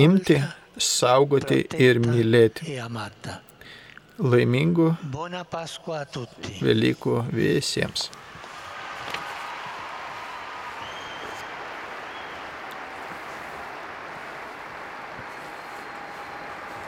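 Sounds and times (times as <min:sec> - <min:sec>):
speech: 0:00.0 - 0:03.5, 0:04.2 - 0:08.3
large crowd applauding the Pope after his Easter address: 0:08.2 - 0:16.8.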